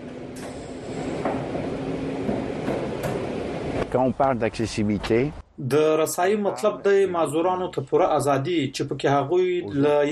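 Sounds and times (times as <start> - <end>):
RER suburban train rumbling outside Paris: 0.0 - 4.2
speech: 3.9 - 10.0.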